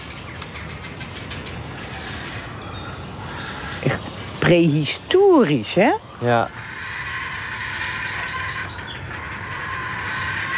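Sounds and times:
speech: 0:03.8 - 0:06.6
heron chicks calling at nest during feeding: 0:06.5 - 0:10.5.

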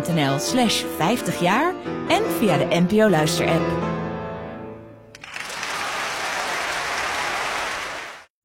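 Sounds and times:
speech: 0:00.0 - 0:04.0
audience applause at a concert in Amsterdam's Concertgebouw: 0:05.2 - 0:08.3.

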